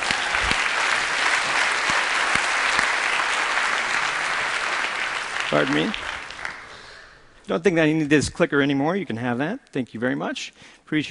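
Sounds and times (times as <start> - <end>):
audience applause: 0.0 - 7.0
speech: 5.5 - 6.1, 7.5 - 11.0.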